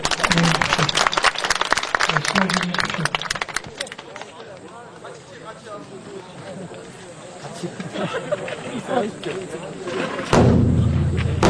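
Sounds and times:
laughter: 0.0 - 4.0, 6.2 - 11.2
crowd applauding a first-place winner at a Buddhist seminary competition: 0.0 - 4.6
murmur of voices: 0.0 - 11.4
speech: 2.1 - 2.9.

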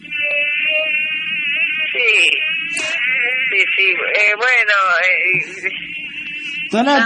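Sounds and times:
mosquitoes buzzing in the Jardín Botánico: 0.2 - 5.6.

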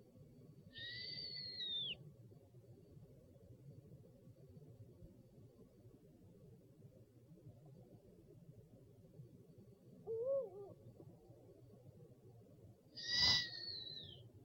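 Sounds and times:
owl calling with low pulses and high sliding whistles: 0.7 - 2.0, 10.1 - 10.8, 13.0 - 14.2.

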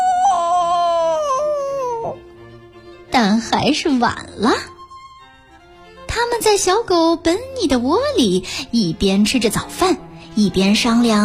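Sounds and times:
human voice imitating a rooster's crow to wake everyone up: 0.0 - 2.2
speech: 3.2 - 4.7, 6.5 - 11.2.

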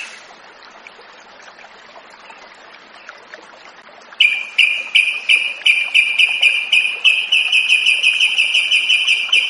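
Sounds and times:
Yellow-vented bulbul rattling trill: 4.2 - 9.4.

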